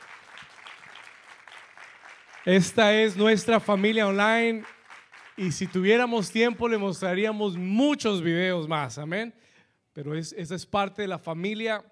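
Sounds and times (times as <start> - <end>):
loud applause: 0.0 - 7.8
speech: 2.4 - 4.8, 5.4 - 11.8.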